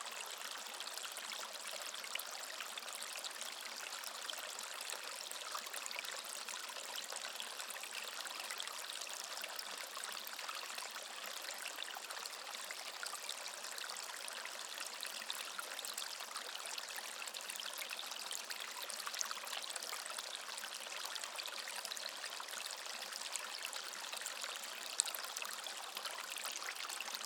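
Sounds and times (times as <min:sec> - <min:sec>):
calm gurgling water stream: 0:00.0 - 0:27.2.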